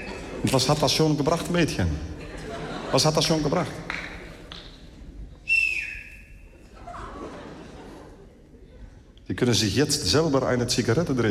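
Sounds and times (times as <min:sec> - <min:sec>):
laughter: 0:00.0 - 0:04.6, 0:06.6 - 0:09.2
speech: 0:00.4 - 0:02.2, 0:02.9 - 0:03.9, 0:09.4 - 0:11.2
person whistling: 0:05.4 - 0:06.6.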